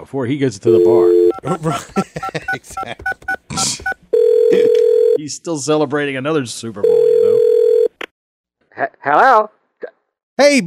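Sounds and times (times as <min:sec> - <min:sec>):
speech: 0:00.1 - 0:07.5, 0:09.0 - 0:09.6, 0:10.4 - 0:10.6
telephone number being dialed in touch tones: 0:00.7 - 0:01.4, 0:02.3 - 0:05.2
steady lower telephone line tone: 0:00.7 - 0:01.5, 0:04.1 - 0:05.2, 0:06.8 - 0:08.0
laughter: 0:01.3 - 0:03.8.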